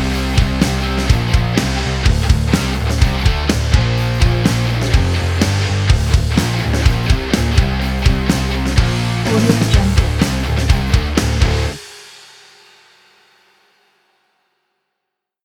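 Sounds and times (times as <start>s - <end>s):
upbeat heavy metal music: 0.0s - 11.8s.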